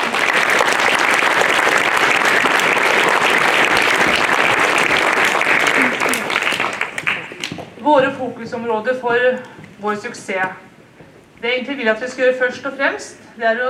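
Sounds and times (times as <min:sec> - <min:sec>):
audience applause: 0:00.0 - 0:07.8
speech: 0:07.9 - 0:10.7, 0:11.4 - 0:13.6.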